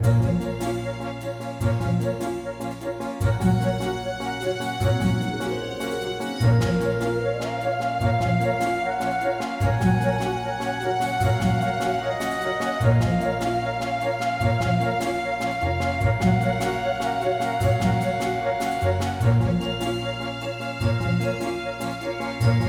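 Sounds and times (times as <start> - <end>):
credits music loop: 0.0 - 22.6.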